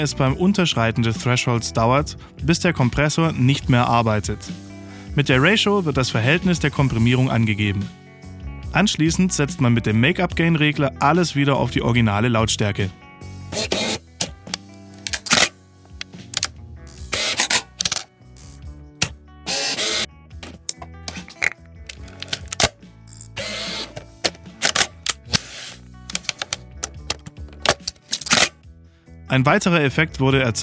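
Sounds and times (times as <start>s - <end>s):
speech: 0.0s - 8.0s, 8.7s - 13.8s, 29.4s - 30.6s
reflex camera lens whirring: 13.6s - 15.5s, 17.1s - 18.1s, 19.5s - 20.1s, 21.9s - 28.6s
reflex camera shutter clicks: 13.6s - 15.5s, 23.4s - 26.6s, 27.6s - 28.5s.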